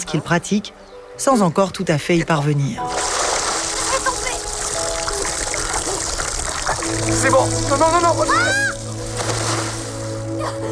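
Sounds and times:
speech: 0.0 - 3.1, 7.1 - 8.7, 10.5 - 10.7
water splashing: 2.8 - 10.4.

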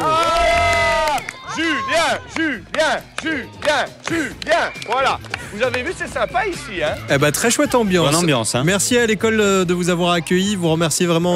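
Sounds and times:
children applauding and cheering: 0.0 - 6.9
speech: 2.1 - 11.3.

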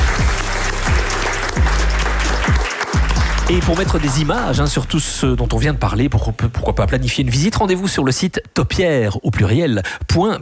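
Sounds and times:
audience applause: 0.0 - 4.5
speech: 3.5 - 10.3.

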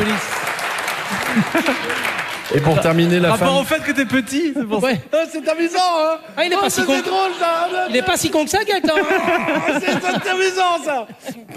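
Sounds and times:
audience applause: 0.0 - 4.5
laughter: 1.0 - 11.5
speech: 1.4 - 11.5.

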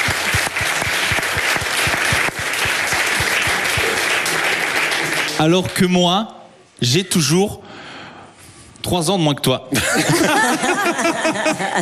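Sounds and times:
audience applause: 0.0 - 5.8
speech: 5.4 - 7.8, 8.8 - 11.8
laughter: 9.7 - 11.8.

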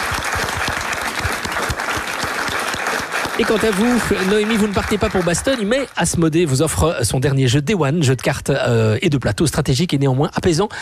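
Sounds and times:
audience applause: 0.0 - 6.1
speech: 3.4 - 10.7.

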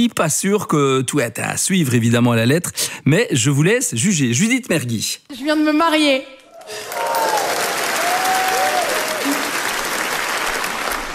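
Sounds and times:
speech: 0.0 - 7.4
loud sustained applause from a large audience: 6.5 - 11.1.

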